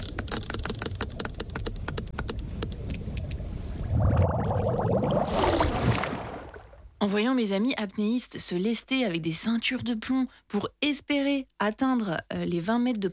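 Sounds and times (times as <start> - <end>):
sperm whale echolocation clicks: 0.0 - 5.0
low churning underwater rumble: 1.9 - 7.0
speech: 7.0 - 13.1.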